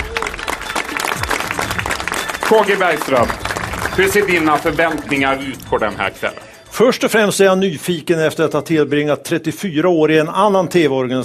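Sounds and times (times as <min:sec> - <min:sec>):
audience applause: 0:00.0 - 0:05.7
speech: 0:02.5 - 0:03.4, 0:04.0 - 0:11.2.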